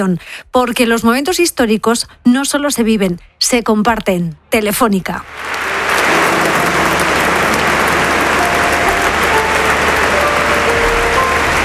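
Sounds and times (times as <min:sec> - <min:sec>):
speech: 0:00.0 - 0:05.7
applause in the church of San Agustín in Barcelona: 0:05.2 - 0:11.6.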